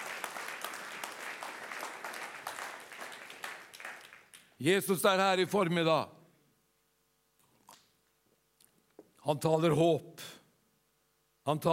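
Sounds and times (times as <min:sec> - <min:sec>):
audience applauding: 0:00.0 - 0:04.6
speech: 0:04.6 - 0:06.2, 0:09.3 - 0:10.4, 0:11.4 - 0:11.7.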